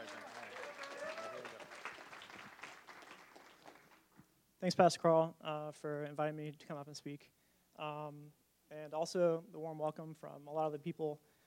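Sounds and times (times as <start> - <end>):
church congregation applause welcoming a speaker: 0.0 - 4.1
speech: 4.6 - 11.3.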